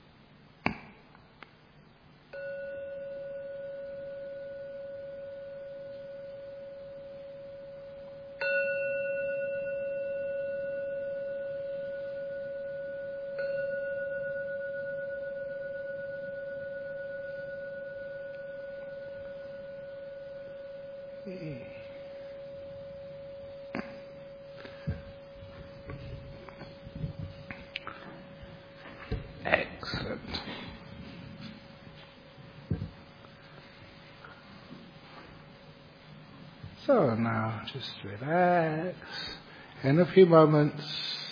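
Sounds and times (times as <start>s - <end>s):
meditation gong ringing: 2.3s - 32.0s
speech: 36.9s - 41.0s.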